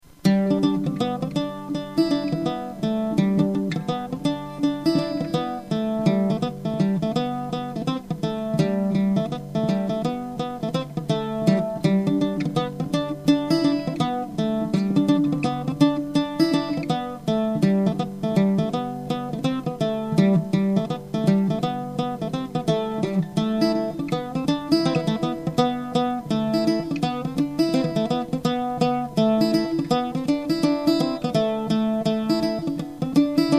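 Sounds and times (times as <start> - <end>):
gavotte music: 0.0 - 33.5.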